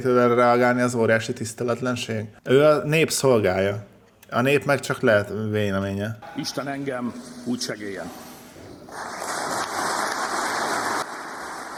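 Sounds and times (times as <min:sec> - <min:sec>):
speech: 0:00.0 - 0:08.2
storm of applause: 0:08.9 - 0:11.7.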